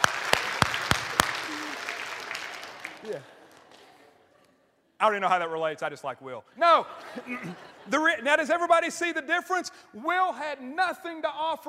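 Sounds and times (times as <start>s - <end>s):
audience applause for a man on stage: 0.0s - 4.0s
speech: 3.0s - 3.4s, 5.0s - 11.6s
laughter: 6.6s - 8.7s.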